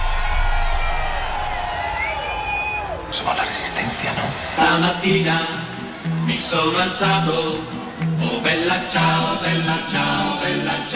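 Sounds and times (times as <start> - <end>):
concert crowd screaming and cheering: 0.0 - 10.8
speech: 3.1 - 5.6, 6.3 - 10.9.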